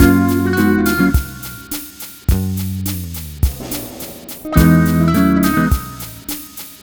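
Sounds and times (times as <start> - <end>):
multi guitar bossa nova mix in F sharp at 105: 0.0 - 2.2, 4.4 - 6.7.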